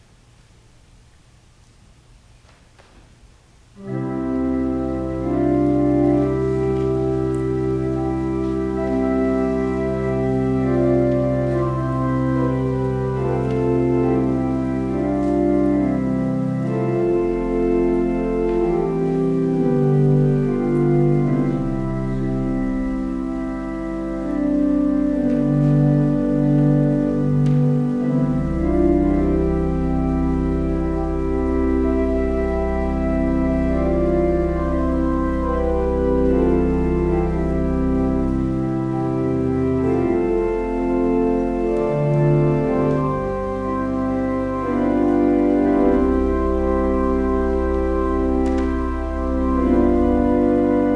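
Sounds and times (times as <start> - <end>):
organ music: 3.7 - 50.9.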